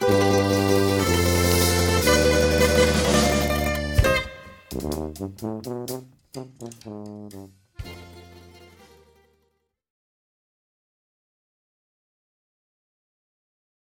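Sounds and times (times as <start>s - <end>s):
dixieland tango music: 0.0s - 9.2s.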